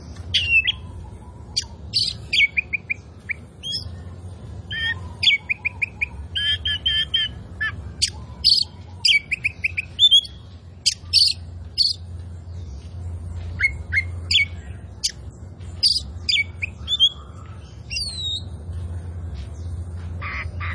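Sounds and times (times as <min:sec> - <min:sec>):
Oriental magpie-robin song: 0:00.0 - 0:20.7.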